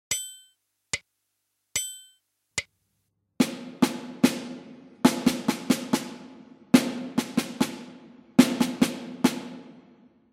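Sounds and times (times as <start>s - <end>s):
rhythmic puzzle beat: 3.4s - 9.8s.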